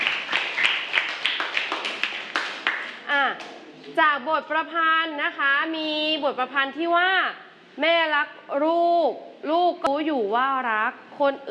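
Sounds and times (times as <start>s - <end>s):
applause: 0.0s - 3.5s
speech: 3.1s - 11.5s.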